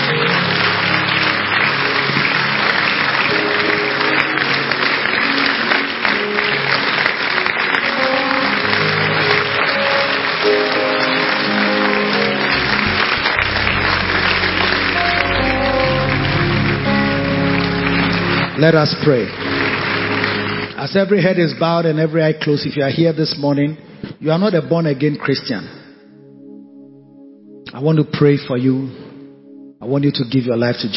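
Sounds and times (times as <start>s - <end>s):
music: 0.0s - 22.1s, 25.2s - 30.9s
audience clapping: 0.0s - 22.2s
speech: 18.6s - 19.5s, 20.9s - 25.8s, 27.7s - 29.1s, 29.8s - 30.9s.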